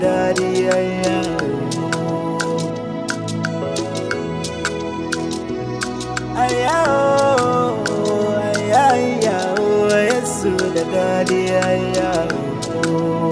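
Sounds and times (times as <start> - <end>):
string music: 0.0 - 13.3.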